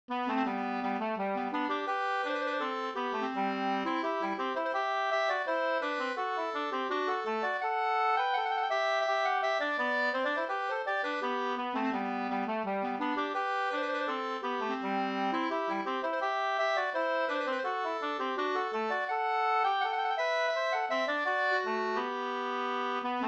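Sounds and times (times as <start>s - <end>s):
folk walking tune: 0.1s - 23.2s.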